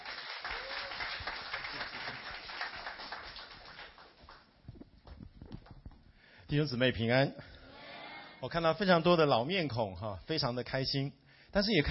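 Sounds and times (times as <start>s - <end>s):
audience applause: 0.0s - 4.5s
speech: 6.5s - 7.5s, 8.4s - 11.8s.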